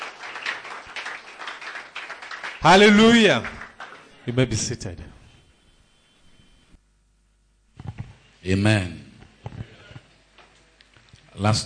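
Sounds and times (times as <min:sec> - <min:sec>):
audience applause: 0:00.0 - 0:04.7
speech: 0:02.6 - 0:03.6, 0:04.2 - 0:05.2, 0:08.4 - 0:09.0, 0:11.4 - 0:11.6.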